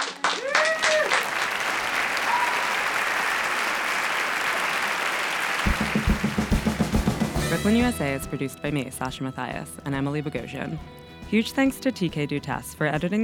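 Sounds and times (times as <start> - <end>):
audience applause: 0.0 - 7.5
speech: 7.6 - 13.2.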